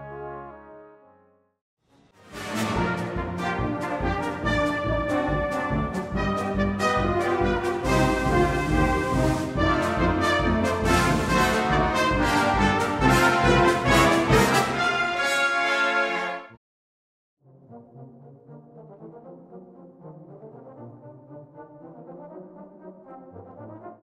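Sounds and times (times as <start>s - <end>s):
cornet playing: 2.2s - 16.6s.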